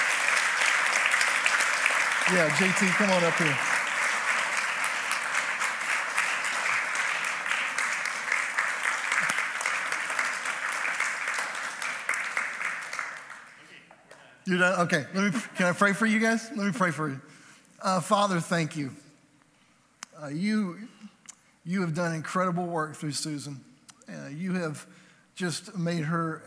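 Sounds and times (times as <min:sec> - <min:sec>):
audience clapping: 0:00.0 - 0:16.0
speech: 0:02.3 - 0:03.7, 0:14.5 - 0:19.0, 0:20.2 - 0:20.9, 0:21.6 - 0:26.4.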